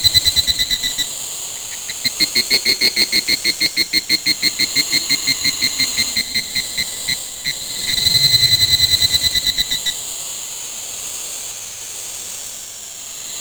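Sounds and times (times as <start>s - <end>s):
cricket ambience: 0.0s - 10.1s.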